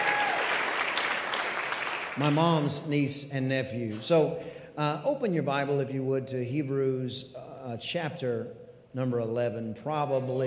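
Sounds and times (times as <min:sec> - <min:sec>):
crowd applauding: 0:00.0 - 0:02.7
speech: 0:02.2 - 0:10.4.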